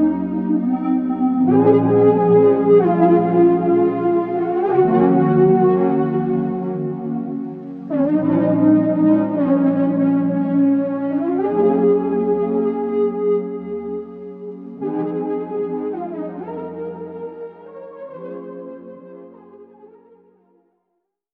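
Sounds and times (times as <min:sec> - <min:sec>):
lofi music: 0:00.0 - 0:16.7.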